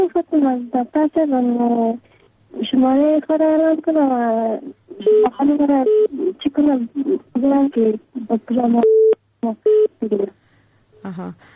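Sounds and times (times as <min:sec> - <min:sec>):
voices on a phone line: 0:00.0 - 0:10.3
speech: 0:00.2 - 0:10.4, 0:11.0 - 0:11.5.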